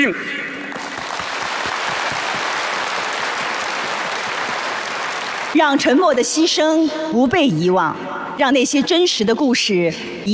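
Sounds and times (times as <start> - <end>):
speech: 0.0 - 0.4, 5.5 - 10.3
crowd applause: 0.7 - 5.8.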